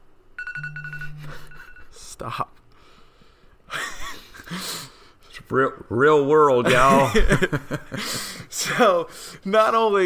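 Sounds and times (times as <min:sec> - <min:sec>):
electronic alarm beeping: 0:00.4 - 0:02.0
speech: 0:02.2 - 0:02.6, 0:04.5 - 0:04.7, 0:05.5 - 0:10.0.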